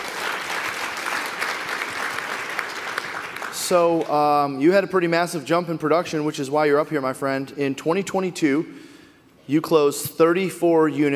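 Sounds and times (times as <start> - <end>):
audience applause: 0.0 - 4.0
speech: 3.7 - 8.9, 9.5 - 11.1.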